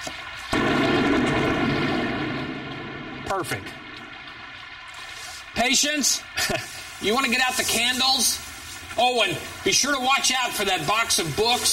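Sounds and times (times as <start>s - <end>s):
thunder during a storm: 0.5s - 4.3s
speech: 3.3s - 3.8s, 5.6s - 11.7s.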